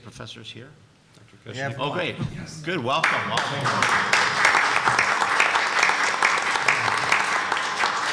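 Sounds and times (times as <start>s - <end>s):
speech: 0.0s - 4.3s
audience applause: 3.0s - 8.1s.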